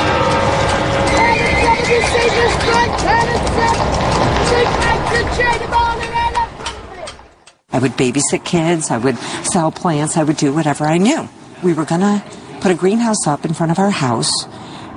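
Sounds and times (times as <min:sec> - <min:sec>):
horse hooves clip-clopping: 0:00.0 - 0:07.6
busy murmur of indistinct voices: 0:00.0 - 0:14.5
street noise: 0:00.0 - 0:14.9
horse neighing and whinnying: 0:01.0 - 0:05.7
speech: 0:07.8 - 0:14.8.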